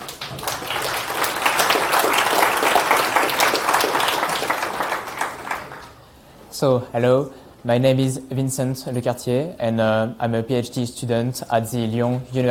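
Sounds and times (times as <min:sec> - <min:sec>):
audience applause welcoming a speaker to the stage at a talk: 0:00.0 - 0:06.0
speech: 0:06.6 - 0:12.5.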